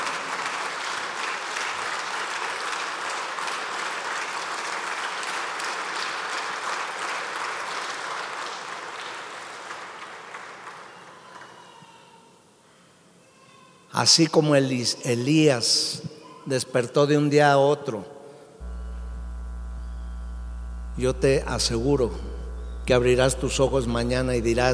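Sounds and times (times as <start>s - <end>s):
audience applause: 0.0s - 11.2s
speech: 14.0s - 18.2s, 21.0s - 22.3s, 22.9s - 24.7s.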